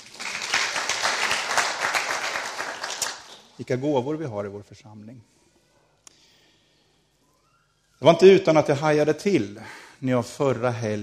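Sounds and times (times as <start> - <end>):
audience applause: 0.0 - 3.5
speech: 3.6 - 5.4, 8.0 - 11.0.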